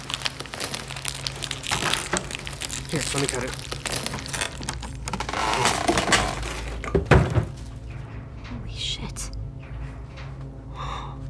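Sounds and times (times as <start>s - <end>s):
plastic wrapping crinkling as it is pulled off a large box: 0.0s - 7.8s
low steady hum: 0.0s - 11.2s
speech: 2.9s - 4.2s.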